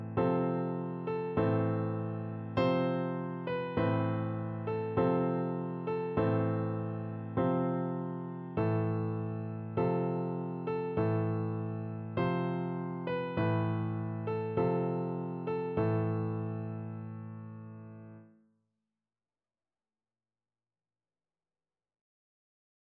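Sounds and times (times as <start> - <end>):
piano duet playing a funeral march: 0.0 - 18.3.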